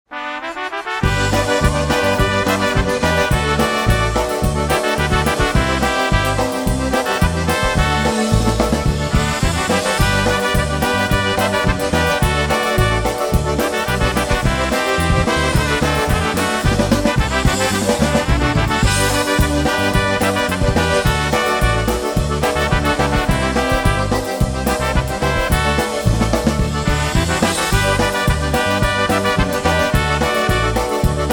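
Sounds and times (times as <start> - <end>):
live polka jam: 0.0 - 31.3.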